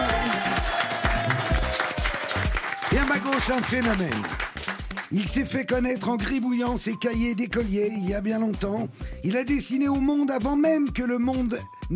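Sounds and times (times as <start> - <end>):
audience ovation for actress Catherine Jacob at a stage show: 0.0 - 5.4
speech: 3.1 - 4.5, 5.1 - 11.9.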